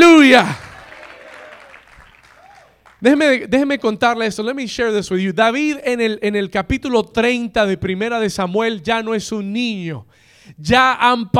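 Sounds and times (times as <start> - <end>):
speech: 0.3 - 0.6, 3.0 - 11.3
audience applauding: 0.4 - 3.0.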